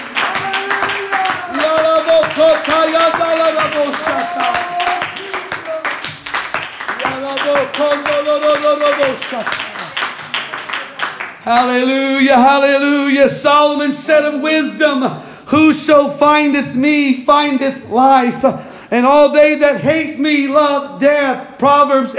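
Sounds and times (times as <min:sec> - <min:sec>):
audience clapping hands: 0:00.0 - 0:12.8
speech: 0:09.0 - 0:09.7, 0:11.4 - 0:22.1.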